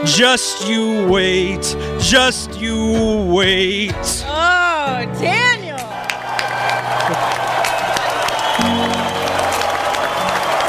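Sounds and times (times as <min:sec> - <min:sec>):
speech: 0:00.0 - 0:05.6
crowd applauding: 0:05.6 - 0:10.6.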